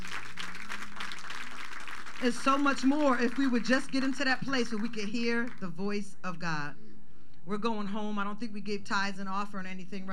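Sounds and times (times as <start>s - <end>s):
audience clapping hands: 0.0s - 5.8s
speech: 2.2s - 6.8s, 7.4s - 10.1s.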